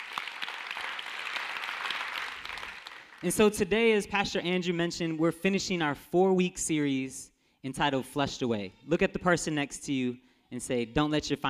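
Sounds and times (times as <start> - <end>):
crowd applauding: 0.0 - 3.5
speech: 3.2 - 11.4.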